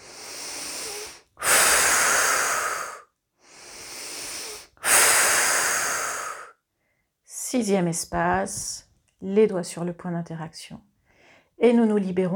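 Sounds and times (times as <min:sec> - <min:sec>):
slow deep breathing during a guided relaxation exercise: 0:00.0 - 0:07.0
speech: 0:07.6 - 0:10.9, 0:11.6 - 0:12.3.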